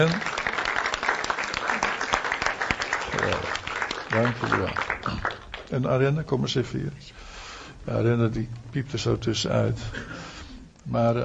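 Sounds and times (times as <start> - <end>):
speech: 0.0 - 0.3, 4.2 - 7.3, 7.9 - 10.2, 10.9 - 11.2
audience applauding: 0.0 - 5.8.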